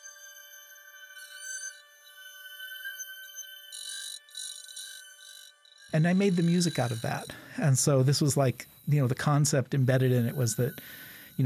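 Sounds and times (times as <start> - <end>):
bowed ice crystals: 0.0 - 11.4
bright hissing noise from bowed ice crystals: 5.9 - 11.4
speech: 5.9 - 11.4.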